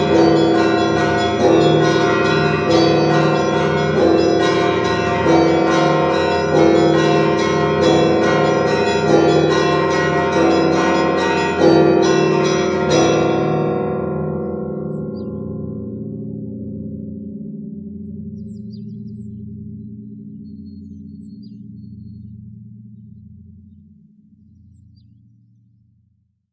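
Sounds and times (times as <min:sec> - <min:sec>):
Vvedensky bells ringing: 0:00.0 - 0:15.4.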